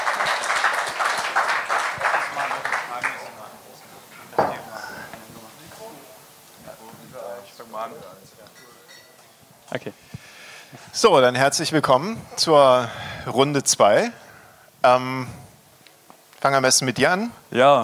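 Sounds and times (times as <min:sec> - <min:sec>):
audience applause: 0:00.0 - 0:03.8
speech: 0:09.7 - 0:10.1, 0:11.0 - 0:14.2, 0:14.8 - 0:15.4, 0:16.4 - 0:17.8.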